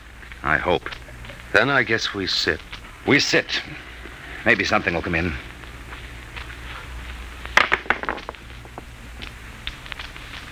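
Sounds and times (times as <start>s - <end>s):
speech: 0.4s - 5.5s
dice being rolled: 7.5s - 8.9s.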